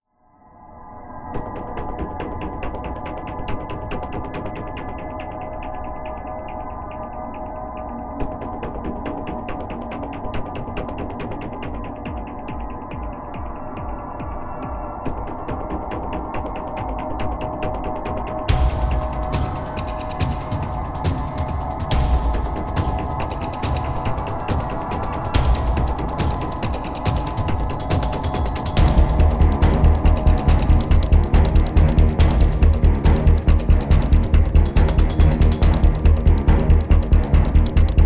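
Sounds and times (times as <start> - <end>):
disco elevator music: 11.7 - 38.0.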